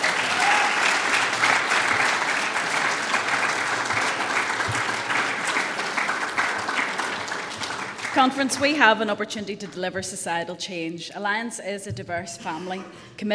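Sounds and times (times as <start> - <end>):
conference audience applause: 0.0 - 8.3
speech: 8.2 - 13.3.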